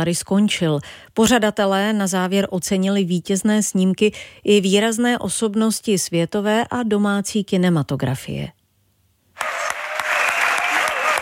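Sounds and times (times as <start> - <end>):
speech: 0.0 - 8.6
standing ovation at Hotel Thermal, Karlovy Vary International Film Festival, greeting Juliette Binoche: 9.4 - 11.1.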